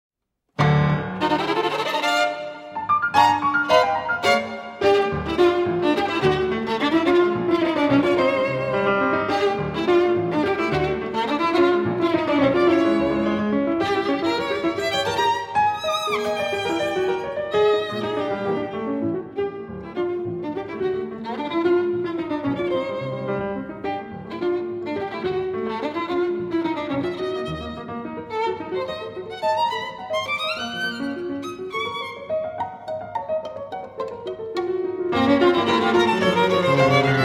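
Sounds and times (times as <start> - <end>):
piano: 0.5 - 37.2
violin: 0.6 - 37.2.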